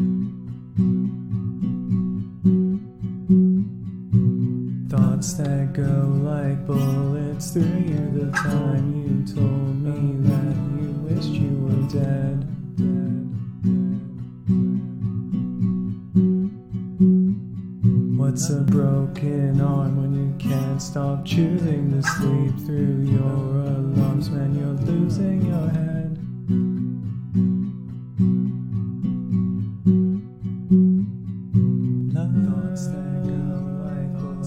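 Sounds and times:
acoustic guitar playing: 0:00.0 - 0:34.4
person singing a cover song: 0:04.9 - 0:14.2, 0:18.2 - 0:26.2, 0:32.1 - 0:34.4.

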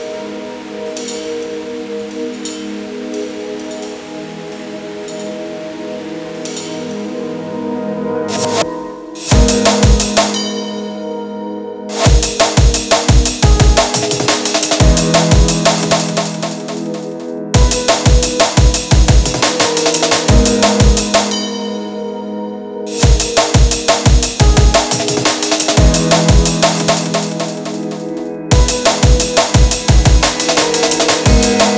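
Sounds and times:
drumfunk beat: 0:09.3 - 0:10.4, 0:11.9 - 0:21.4, 0:23.0 - 0:31.7.

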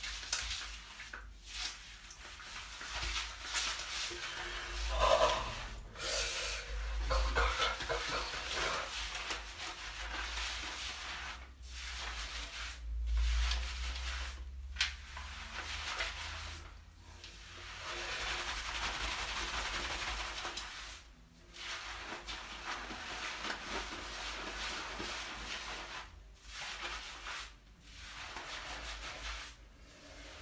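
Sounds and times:
cold shower water running: 0:00.0 - 0:30.3
person moaning: 0:04.8 - 0:07.7.

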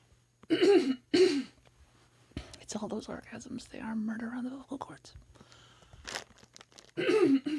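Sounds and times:
person losing their voice coughing: 0:00.5 - 0:01.6, 0:07.0 - 0:07.5
speech: 0:02.7 - 0:05.5.

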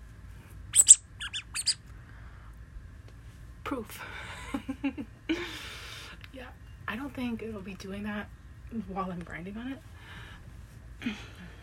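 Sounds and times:
rubber duck squeaking: 0:00.8 - 0:01.8
speech: 0:03.7 - 0:05.6, 0:06.4 - 0:09.9, 0:11.0 - 0:11.3.

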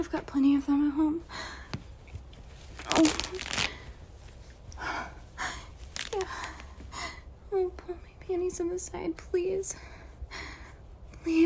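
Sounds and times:
speech: 0:00.0 - 0:01.6, 0:02.9 - 0:03.7, 0:07.5 - 0:09.9, 0:11.2 - 0:11.4
tights tearing: 0:01.8 - 0:04.6, 0:05.6 - 0:06.8.

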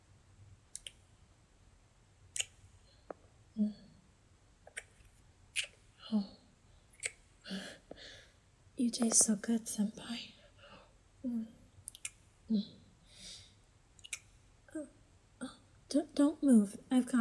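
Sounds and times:
wet kissing: 0:02.4 - 0:02.6, 0:04.7 - 0:05.0, 0:05.6 - 0:05.8, 0:07.0 - 0:07.2, 0:14.0 - 0:14.3
speech: 0:03.6 - 0:03.8, 0:06.1 - 0:06.4, 0:08.8 - 0:10.4, 0:12.5 - 0:12.8, 0:15.9 - 0:17.2.

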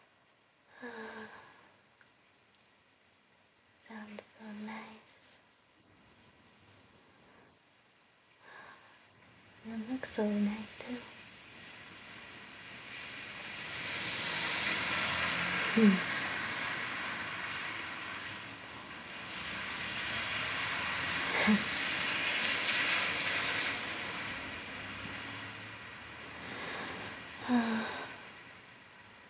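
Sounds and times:
speech: 0:09.8 - 0:11.1, 0:15.8 - 0:16.1
cars driving through street puddles: 0:11.2 - 0:29.2.

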